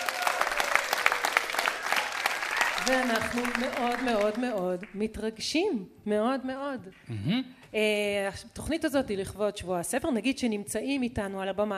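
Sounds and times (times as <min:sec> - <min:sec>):
audience applause in a large hall: 0:00.0 - 0:04.6
speech: 0:02.9 - 0:11.7.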